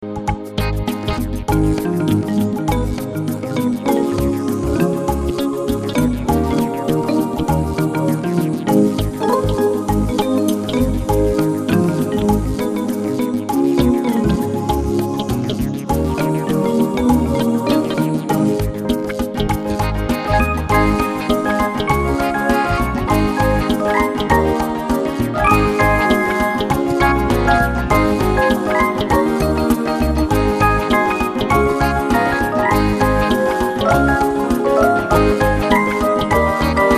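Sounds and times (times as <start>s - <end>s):
easy funk music: 0.0s - 36.9s.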